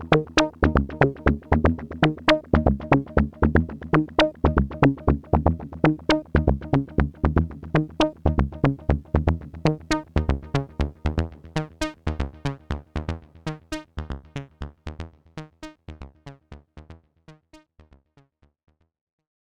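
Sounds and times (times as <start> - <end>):
WASP synthesizer low pass sequence: 0.0 - 14.3.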